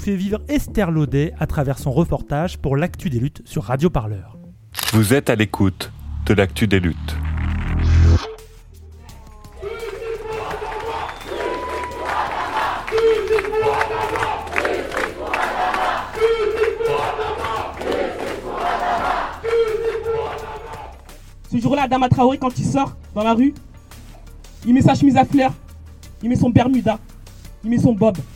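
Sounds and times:
speech: 0.0s - 7.2s, 21.5s - 23.7s, 24.6s - 25.6s, 26.2s - 28.3s
large crowd chanting at a protest march: 9.6s - 21.0s.

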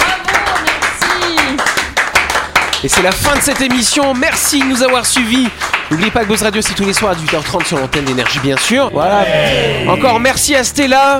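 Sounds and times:
audience applause: 0.0s - 8.9s
speech: 2.8s - 11.1s.

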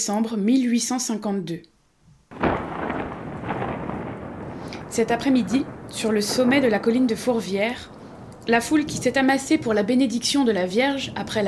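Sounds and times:
speech: 0.0s - 1.7s, 5.0s - 11.4s
heavy rain pouring: 2.3s - 11.4s
rumbling thunder: 2.3s - 11.4s.

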